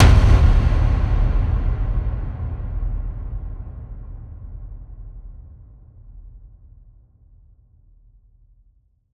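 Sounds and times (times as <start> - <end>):
hit: 0.0 - 5.4.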